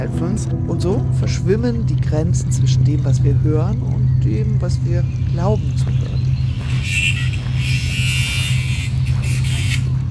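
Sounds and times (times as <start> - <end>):
speech: 0.0 - 6.1
gardener's angle grinder grinding: 5.8 - 10.0.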